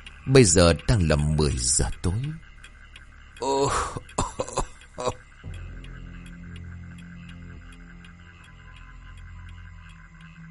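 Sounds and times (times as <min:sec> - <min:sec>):
low steady hum: 0:00.0 - 0:10.4
speech: 0:00.2 - 0:02.4, 0:03.4 - 0:04.2
old man coughing and clearing his throat: 0:03.6 - 0:05.2.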